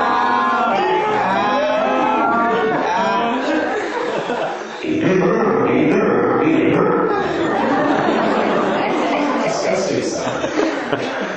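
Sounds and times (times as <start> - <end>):
people imitating donkeys braying loudly: 0.0 - 3.7, 4.8 - 8.1
people chuckling and chattering: 0.0 - 11.3.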